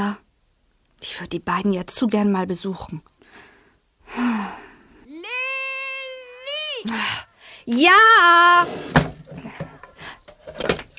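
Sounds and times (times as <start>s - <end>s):
speech: 0.0s - 0.2s, 1.0s - 3.5s, 6.8s - 9.1s
drawer being closed: 8.6s - 10.9s.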